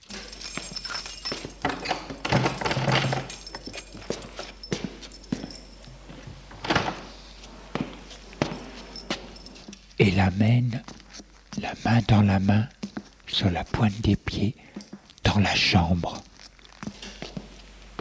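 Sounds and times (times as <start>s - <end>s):
door opening: 0.1s - 9.7s
speech: 10.0s - 10.9s, 11.6s - 12.8s, 13.4s - 14.6s, 15.4s - 16.3s.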